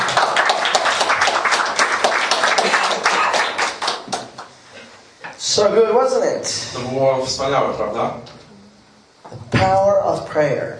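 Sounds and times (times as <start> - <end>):
audience applause at a prayer gathering: 0.0 - 4.5
speech: 5.6 - 8.3, 9.3 - 10.7.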